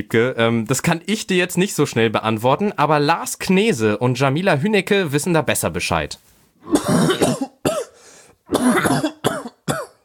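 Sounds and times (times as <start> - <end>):
speech: 0.0 - 7.5, 8.5 - 9.1
person coughing: 6.7 - 10.0.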